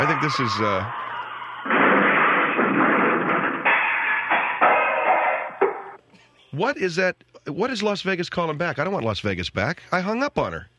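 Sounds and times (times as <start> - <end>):
speech: 0.2 - 1.0, 6.5 - 10.7
car crash: 1.7 - 5.7.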